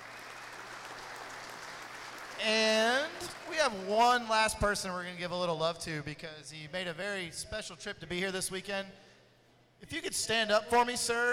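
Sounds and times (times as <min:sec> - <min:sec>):
audience applause: 0:00.0 - 0:04.0
speech: 0:02.4 - 0:02.6, 0:03.6 - 0:09.1, 0:09.8 - 0:11.3.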